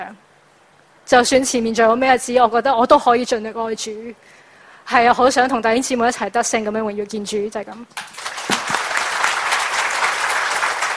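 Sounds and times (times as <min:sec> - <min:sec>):
speech: 0:00.0 - 0:00.3, 0:01.1 - 0:08.3
audience applause: 0:08.0 - 0:10.9.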